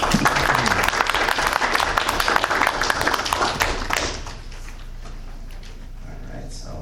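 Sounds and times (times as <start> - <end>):
public meeting audience applause: 0.0 - 4.4.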